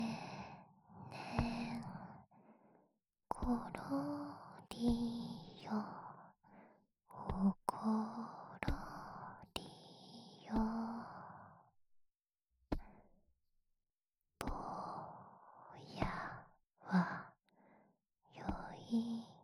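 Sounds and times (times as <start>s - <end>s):
lullaby: 0.0s - 2.3s, 3.3s - 6.4s, 7.1s - 11.6s, 14.4s - 17.4s, 18.4s - 19.4s.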